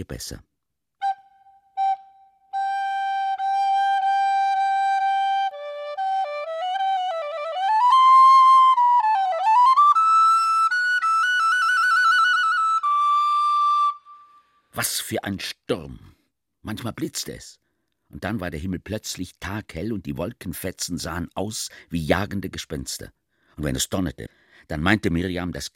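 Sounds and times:
speech: 0:00.0 - 0:00.5, 0:14.8 - 0:25.7
whistled short melody with scale: 0:01.0 - 0:14.7.

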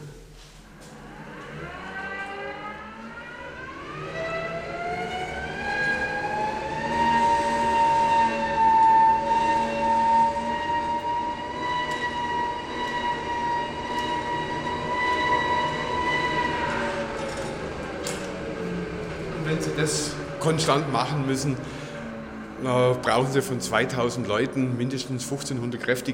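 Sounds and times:
hand-cranked ventilation air pump: 0:05.1 - 0:21.3
speech: 0:19.8 - 0:21.7, 0:22.6 - 0:26.1.

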